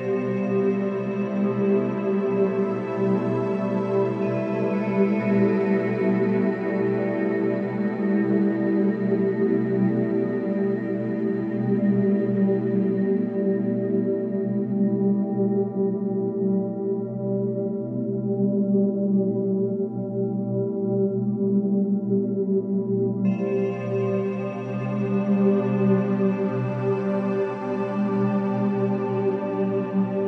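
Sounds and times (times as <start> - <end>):
dreamy warm ambient synth: 0.0 - 30.2.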